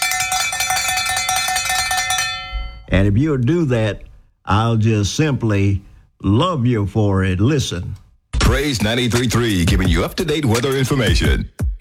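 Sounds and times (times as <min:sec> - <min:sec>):
loud bell ringing: 0:00.0 - 0:03.2
speech: 0:02.9 - 0:11.7.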